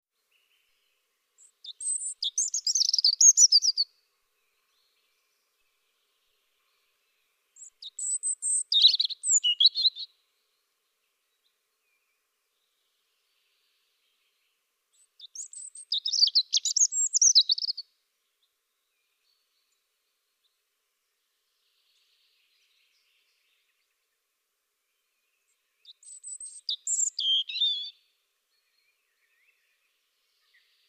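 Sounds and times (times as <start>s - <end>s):
European robin singing: 0.2s - 20.6s, 24.9s - 30.8s.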